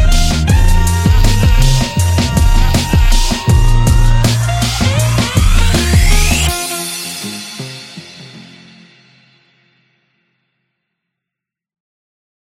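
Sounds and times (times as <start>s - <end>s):
lo-fi music: 0.0s - 9.0s.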